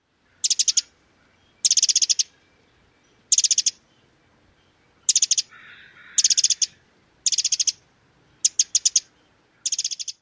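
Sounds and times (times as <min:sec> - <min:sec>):
calls: 0:00.2 - 0:02.4, 0:03.2 - 0:03.9, 0:05.0 - 0:07.8, 0:08.4 - 0:10.2.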